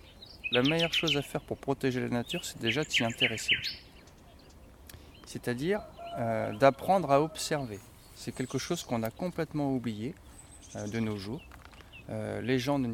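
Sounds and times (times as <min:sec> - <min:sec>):
birds in Pont Pean: 0:00.0 - 0:12.9.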